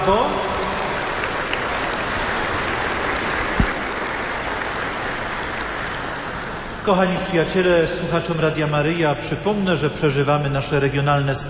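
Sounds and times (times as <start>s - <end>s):
speech: 0.0s - 0.8s, 6.8s - 11.4s
warm applause in a church: 0.0s - 8.2s.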